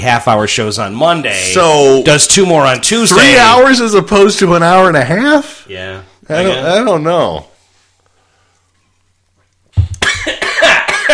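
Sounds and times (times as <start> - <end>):
speech: 0.0 - 7.5
person coughing after a drink went down the wrong pipe: 9.9 - 11.1.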